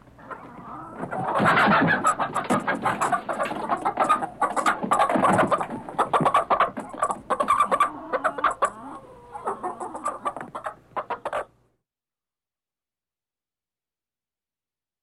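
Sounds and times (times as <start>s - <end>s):
chicken giving rapid clucks: 0.2s - 11.6s.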